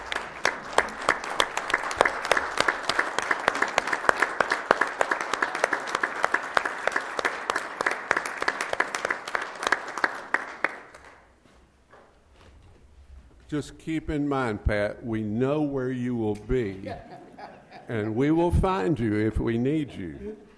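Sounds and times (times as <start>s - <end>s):
round of applause: 0.0s - 11.3s
speech: 13.5s - 17.1s, 17.9s - 20.5s
laughter: 16.7s - 18.6s.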